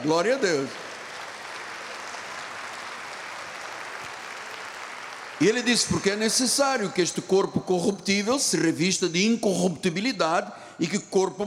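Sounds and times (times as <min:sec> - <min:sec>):
speech: 0:00.0 - 0:00.8, 0:05.4 - 0:11.4
audience applause: 0:00.0 - 0:06.8.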